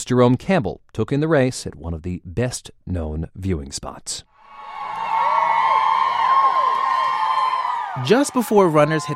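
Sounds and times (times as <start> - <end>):
speech: 0.1 - 4.3, 8.0 - 9.1
race fans cheering and screaming along a race route: 4.4 - 9.1.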